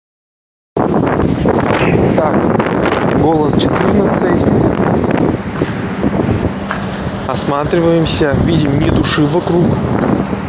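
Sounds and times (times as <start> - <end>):
strong wind gusts buffeting the microphone outdoors: 0.8 - 10.4
speech: 3.3 - 5.2, 7.3 - 10.1.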